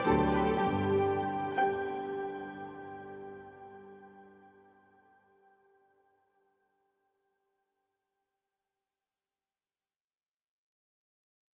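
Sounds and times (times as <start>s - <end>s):
ambient music: 0.0s - 5.0s.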